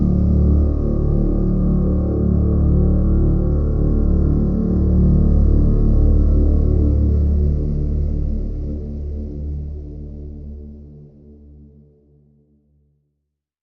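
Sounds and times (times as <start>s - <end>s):
drone in D: 0.0s - 8.9s.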